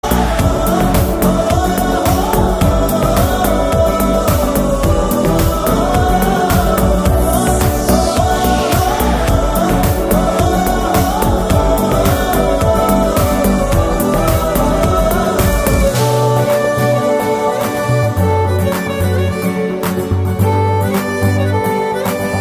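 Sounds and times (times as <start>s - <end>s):
humming a song: 0.0s - 22.3s.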